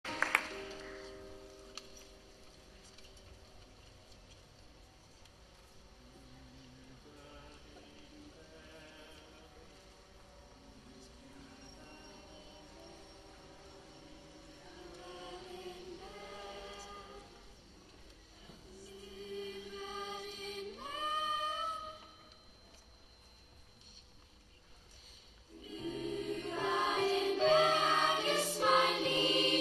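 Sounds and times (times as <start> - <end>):
lower-grade school choir singing a traditional Finnish song: 7.2 - 22.2, 25.5 - 29.5.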